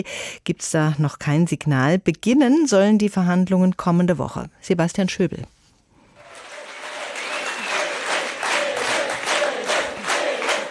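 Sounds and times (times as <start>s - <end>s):
speech: 0.0s - 5.6s
crowd cheering and applauding at a Left party special conference: 6.2s - 10.6s.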